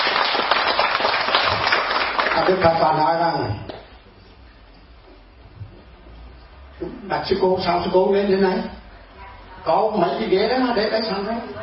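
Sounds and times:
audience applause: 0.0s - 2.7s
speech: 2.4s - 3.8s, 7.1s - 8.8s, 9.6s - 11.6s.

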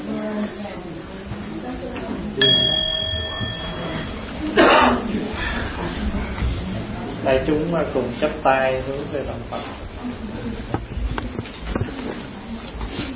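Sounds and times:
murmur of people talking: 0.0s - 13.1s
single struck temple bell ringing: 2.4s - 4.7s
person coughing: 4.6s - 5.1s
speech: 7.3s - 9.8s.

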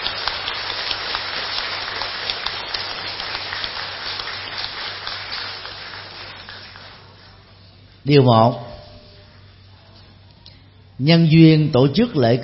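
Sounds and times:
loud round of applause: 0.0s - 7.5s
speech: 8.1s - 8.7s, 11.0s - 12.4s.

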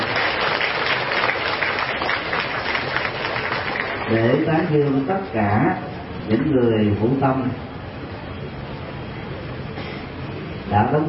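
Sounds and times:
applause from Buddhist devotees at a temple: 0.0s - 4.4s
speech: 4.1s - 7.7s, 10.7s - 11.0s.

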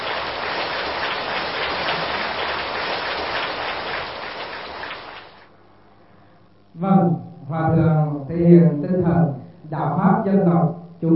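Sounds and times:
crowd applauding: 0.0s - 5.5s
speech: 6.8s - 11.1s.

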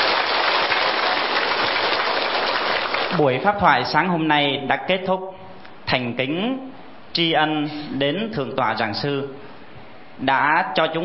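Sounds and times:
warm crowd applause: 0.0s - 3.4s
speech: 3.1s - 9.5s, 10.2s - 11.0s.

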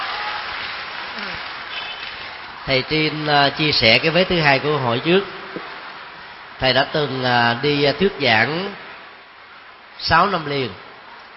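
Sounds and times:
audience clapping at a Buddhist talk: 0.0s - 4.1s
speech: 2.6s - 5.6s, 6.6s - 8.8s, 10.0s - 10.8s.

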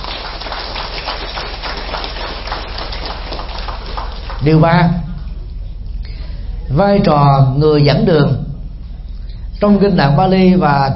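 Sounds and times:
large crowd applauding loudly: 0.0s - 5.4s
speech: 4.4s - 5.0s, 6.7s - 8.4s, 9.6s - 10.9s.

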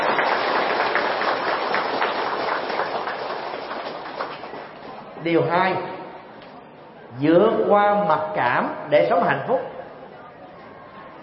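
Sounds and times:
large audience applause: 0.0s - 5.0s
speech: 5.2s - 6.0s, 7.2s - 9.7s.

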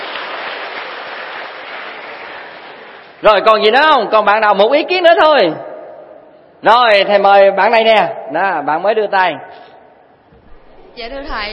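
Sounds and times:
classroom audience of students clapping: 0.0s - 3.2s
speech: 3.2s - 5.7s, 6.6s - 9.7s, 11.0s - 11.5s.

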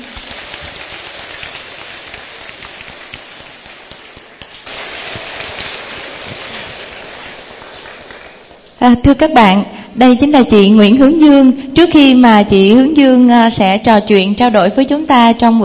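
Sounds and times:
audience applause: 0.0s - 8.8s
speech: 8.8s - 15.6s.

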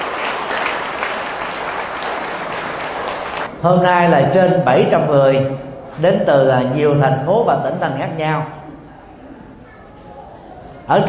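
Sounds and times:
big round of audience applause: 0.0s - 3.5s
speech: 3.6s - 8.6s, 10.9s - 11.0s.

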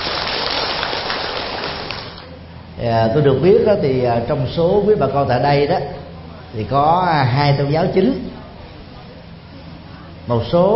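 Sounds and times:
big round of applause: 0.0s - 2.2s
speech: 2.8s - 8.3s, 10.3s - 10.7s.

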